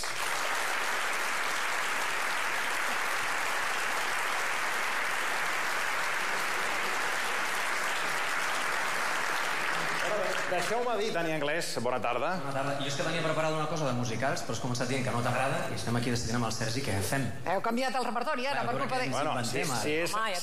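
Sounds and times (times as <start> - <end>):
audience applause: 0.0 - 11.1
speech: 10.5 - 20.4.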